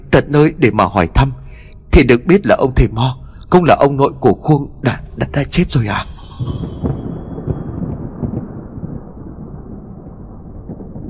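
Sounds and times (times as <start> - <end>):
speech: 0.1 - 1.4, 2.0 - 6.8
loud thunderclap: 6.4 - 11.0.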